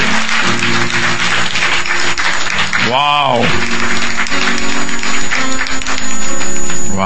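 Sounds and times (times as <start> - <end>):
audience applause: 0.0 - 6.9.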